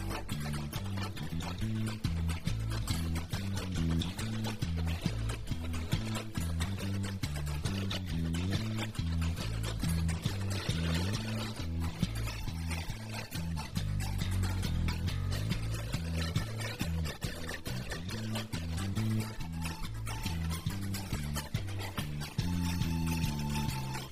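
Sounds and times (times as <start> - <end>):
instrumental Irish jig music: 0.0 - 24.1.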